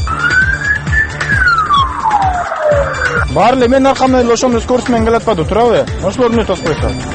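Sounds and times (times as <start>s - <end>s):
police car siren as emergency vehicle special signal: 0.0s - 3.3s
speech: 3.4s - 7.1s.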